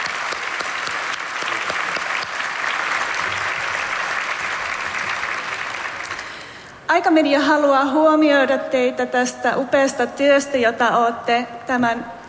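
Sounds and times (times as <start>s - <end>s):
large audience giving standing applause: 0.0s - 6.6s
speech: 6.9s - 12.2s.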